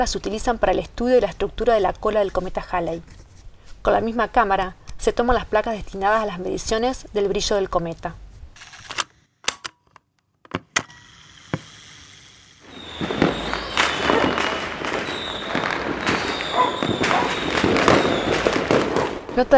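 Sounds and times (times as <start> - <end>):
speech: 0.0 - 3.2, 3.8 - 8.2
fireworks opening the centenary celebrations at midnight: 12.6 - 19.5.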